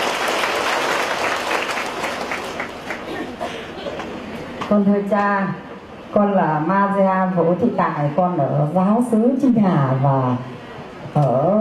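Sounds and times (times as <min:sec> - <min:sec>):
congregation applauding at a Catholic healing gathering: 0:00.0 - 0:03.4
speech: 0:04.7 - 0:10.5, 0:11.1 - 0:11.6.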